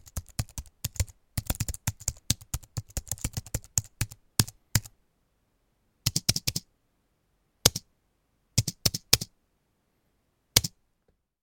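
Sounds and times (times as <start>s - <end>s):
keyboard typing: 0.0s - 4.9s, 6.0s - 6.7s, 7.7s - 7.9s, 8.6s - 9.3s, 10.6s - 10.8s.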